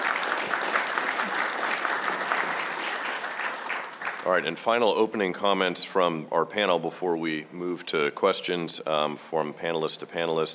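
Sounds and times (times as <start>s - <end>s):
audience round of applause: 0.0s - 4.4s
speech: 4.2s - 10.5s.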